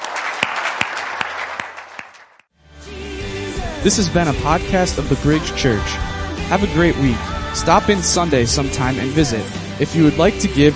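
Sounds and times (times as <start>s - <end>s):
audience applauding: 0.0s - 2.5s
speech: 3.8s - 10.7s.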